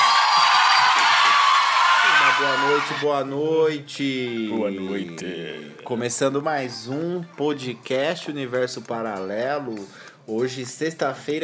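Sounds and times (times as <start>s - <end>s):
whoops and shouts: 0.0s - 3.0s
large crowd cheering and clapping: 0.0s - 3.1s
speech: 2.4s - 11.4s.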